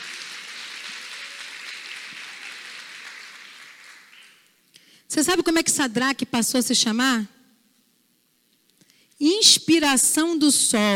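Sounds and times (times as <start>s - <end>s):
audience applause: 0.0s - 4.5s
speech: 5.1s - 7.4s, 9.4s - 10.9s.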